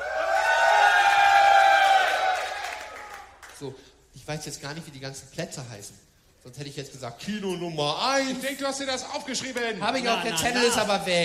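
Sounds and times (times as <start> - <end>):
festival crowd cheering and shouting: 0.0 - 3.1
speech: 3.6 - 11.2.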